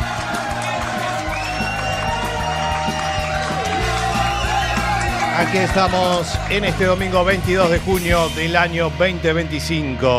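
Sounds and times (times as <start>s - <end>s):
applause: 0.0s - 8.3s
ovation cheering: 0.0s - 8.7s
speech: 5.4s - 10.1s.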